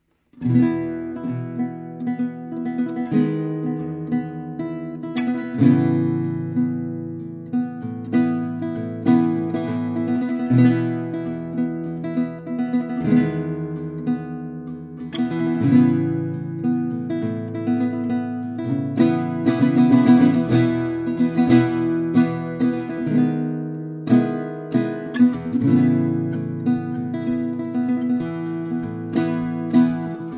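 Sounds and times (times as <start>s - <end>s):
guitar: 0.0s - 30.3s.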